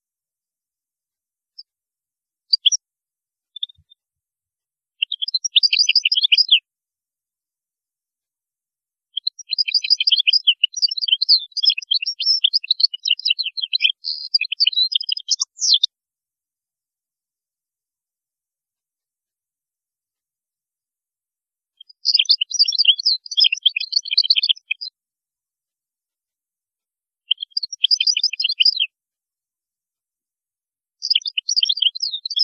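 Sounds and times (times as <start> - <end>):
European goldfinch song: 5.0 - 6.6, 9.2 - 15.9, 21.8 - 24.9, 27.3 - 28.8, 31.0 - 32.4.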